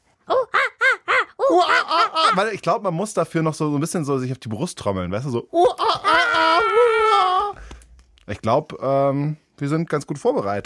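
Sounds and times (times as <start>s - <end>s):
person imitating a monkey call: 0.3s - 2.5s, 5.5s - 7.6s
speech: 1.5s - 7.0s, 8.3s - 10.6s.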